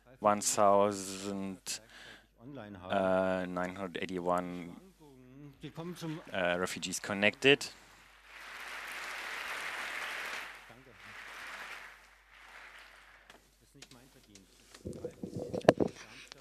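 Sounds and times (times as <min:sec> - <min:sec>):
speech: 0:00.2 - 0:04.9, 0:05.6 - 0:07.8
applause: 0:06.2 - 0:13.5.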